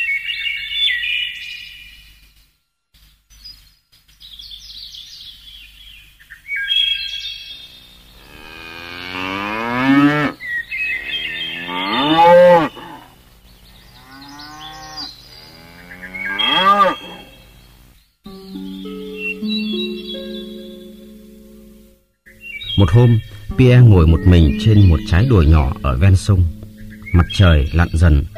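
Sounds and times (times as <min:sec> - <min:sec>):
birds chirping: 0:00.0 - 0:28.3
cattle lowing returning to the barn: 0:08.2 - 0:13.2, 0:14.0 - 0:17.3
speech: 0:22.8 - 0:26.6, 0:27.2 - 0:28.3.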